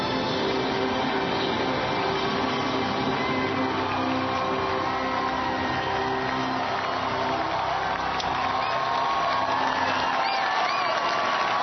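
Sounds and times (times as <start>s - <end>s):
large crowd cheering and applauding: 0.0s - 11.6s
shouts and whoops from the crowd: 3.7s - 11.6s.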